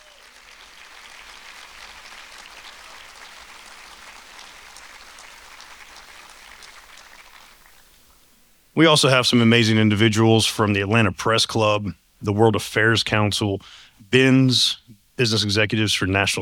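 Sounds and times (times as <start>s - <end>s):
crowd applauding: 0.0s - 7.8s
speech: 8.8s - 16.4s.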